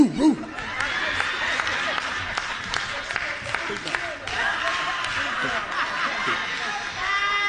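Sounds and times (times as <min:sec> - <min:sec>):
man's voice imitating a big dog barking: 0:00.0 - 0:00.5
crowd noise: 0:00.0 - 0:07.4
people laughing: 0:00.0 - 0:07.4
people clapping: 0:00.3 - 0:07.4.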